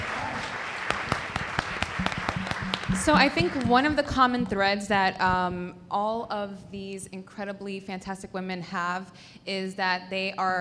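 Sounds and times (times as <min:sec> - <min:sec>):
audience applause: 0:00.0 - 0:03.6
speech: 0:02.9 - 0:10.5.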